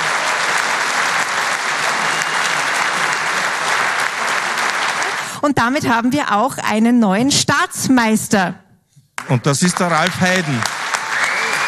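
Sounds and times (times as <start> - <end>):
audience applause: 0.0 - 5.4, 9.2 - 11.6
speech: 5.4 - 8.6, 9.3 - 10.7.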